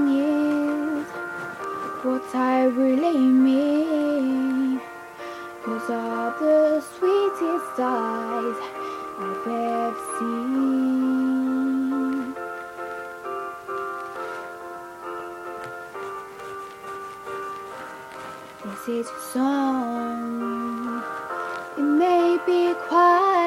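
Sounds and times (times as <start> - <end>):
person singing: 0.0 - 4.9, 5.6 - 12.4, 18.6 - 23.4.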